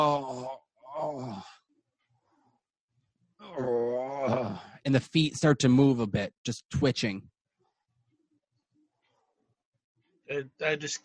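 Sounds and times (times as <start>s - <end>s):
speech: 0.0s - 0.6s, 4.8s - 7.3s, 10.3s - 11.0s
person imitating a groan: 0.0s - 1.6s, 3.4s - 4.8s.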